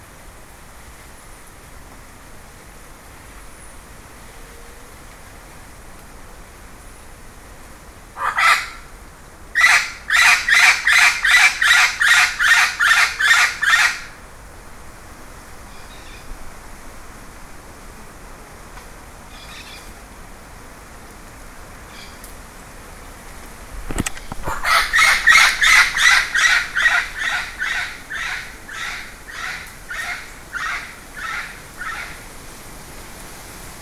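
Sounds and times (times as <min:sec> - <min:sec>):
bird squawking: 0:09.6 - 0:14.1, 0:24.3 - 0:32.2.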